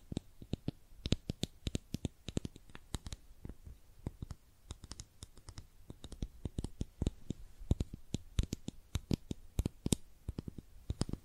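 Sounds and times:
makeup tapped and scratched clicks: 0.0 - 11.2.

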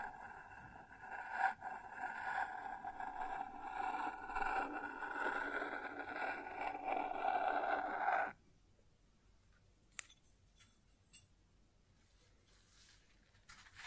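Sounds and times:
grinding rumble on a wooden surface: 0.0 - 8.4.

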